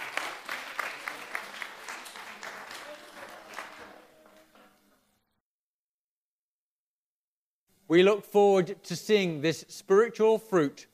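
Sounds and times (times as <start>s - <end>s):
audience clapping: 0.0s - 4.8s
speech: 7.9s - 10.9s.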